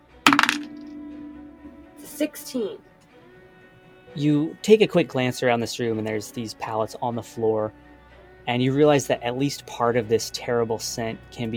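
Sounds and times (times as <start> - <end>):
dice clattering onto a hard surface: 0.3 - 0.8
low hum: 0.3 - 2.6
speech: 2.1 - 2.9, 4.2 - 7.8, 8.5 - 11.5.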